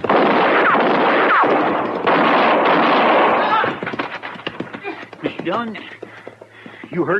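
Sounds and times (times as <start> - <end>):
gunshots fired by a rider on a town street: 0.0 - 4.3
dense noisy rumble: 0.0 - 7.1
speech: 5.5 - 6.0, 6.9 - 7.1.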